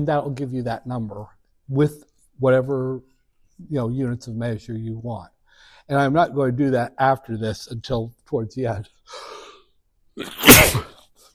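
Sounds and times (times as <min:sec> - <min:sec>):
speech: 0:00.0 - 0:09.4, 0:10.2 - 0:10.9
sneeze: 0:10.2 - 0:11.1.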